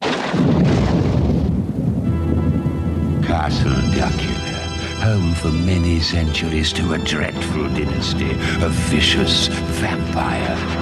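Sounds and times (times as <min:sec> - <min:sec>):
80s cartoon theme song rumble like rolling thunder: 0:00.3 - 0:03.4
80s cartoon theme song faint sustained musical tones: 0:02.0 - 0:10.8
speech: 0:03.4 - 0:04.4, 0:05.0 - 0:10.8.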